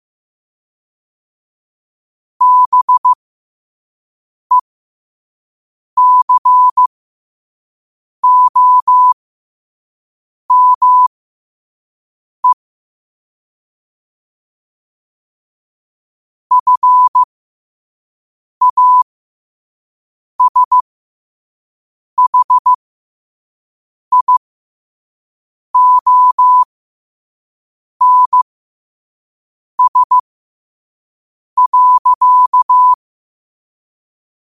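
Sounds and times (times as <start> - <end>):
morse code at 5 wpm: 2.4 - 3.2, 6.0 - 6.9, 8.2 - 9.2, 10.5 - 11.1, 16.5 - 17.3, 18.6 - 19.0, 20.4 - 20.8, 22.2 - 22.7, 24.1 - 24.4, 25.8 - 26.7, 28.0 - 28.4, 29.8 - 30.2, 31.6 - 33.0.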